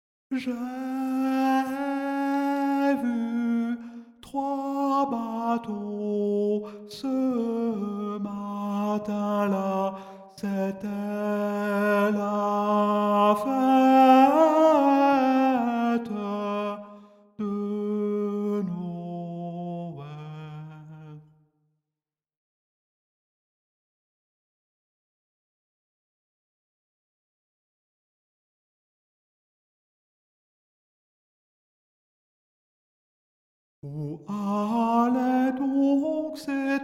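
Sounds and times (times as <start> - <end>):
tenor singing Christmas carol: 0.3 - 21.2, 33.8 - 36.8.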